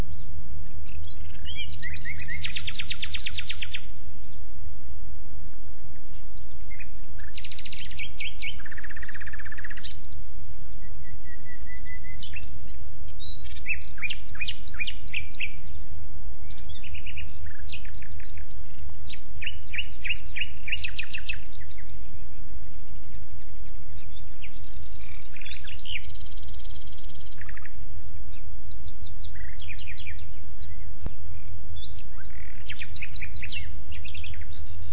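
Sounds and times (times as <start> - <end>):
Common nightingale song: 0.0 - 34.9.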